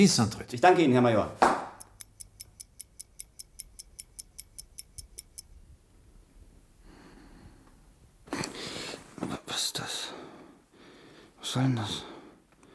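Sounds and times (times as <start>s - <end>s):
speech: 0.0s - 1.5s
clock ticking: 1.8s - 5.6s
soft breathing: 6.8s - 9.2s, 10.0s - 11.4s.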